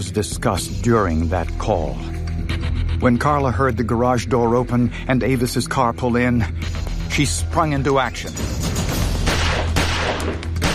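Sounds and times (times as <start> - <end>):
speech: 0.0 - 2.2, 3.0 - 8.7
gunshots: 9.1 - 10.7.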